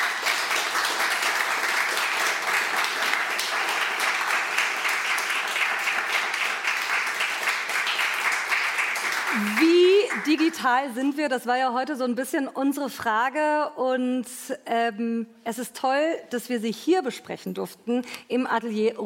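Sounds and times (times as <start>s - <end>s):
audience applause: 0.0s - 10.6s
speech: 10.2s - 19.0s.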